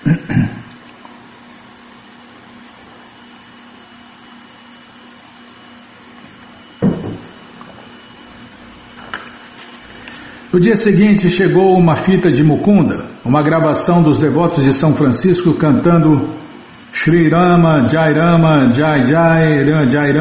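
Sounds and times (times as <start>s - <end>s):
person gulping water: 0.0s - 0.8s
low electrical hum: 0.0s - 20.2s
speech: 10.5s - 20.2s.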